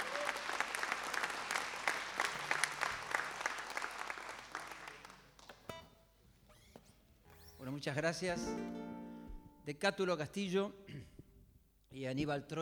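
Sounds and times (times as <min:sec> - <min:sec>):
audience applause: 0:00.0 - 0:05.6
speech: 0:07.8 - 0:08.8, 0:09.6 - 0:11.1, 0:11.9 - 0:12.6.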